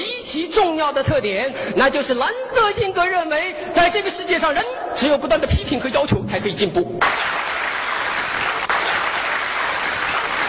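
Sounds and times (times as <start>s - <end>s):
speech: 0.3s - 7.4s
audience applause: 7.0s - 10.4s.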